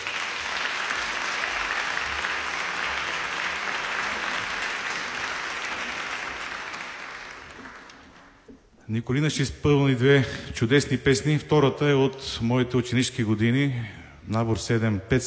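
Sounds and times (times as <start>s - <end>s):
audience applause: 0.0s - 8.6s
speech: 8.9s - 15.2s.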